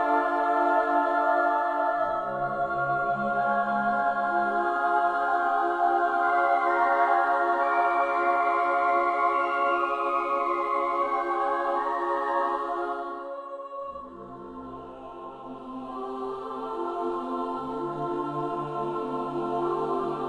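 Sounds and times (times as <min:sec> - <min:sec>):
choir singing: 0:00.0 - 0:20.2.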